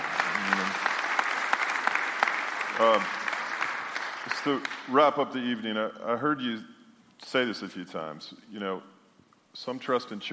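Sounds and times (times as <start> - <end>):
audience applause: 0.0 - 4.9
speech: 2.8 - 3.2, 4.4 - 8.9, 9.5 - 10.3.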